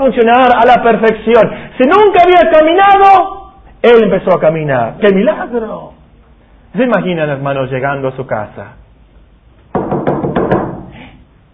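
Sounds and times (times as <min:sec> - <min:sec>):
speech: 0:00.0 - 0:06.0, 0:06.7 - 0:08.8
knocking on a door: 0:09.7 - 0:10.9.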